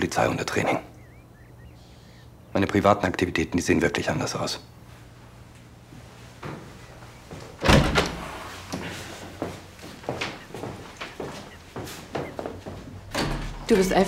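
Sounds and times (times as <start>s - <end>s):
speech: 0.0s - 0.9s, 2.6s - 4.8s, 13.7s - 14.0s
door being closed: 7.5s - 8.9s, 12.9s - 14.0s.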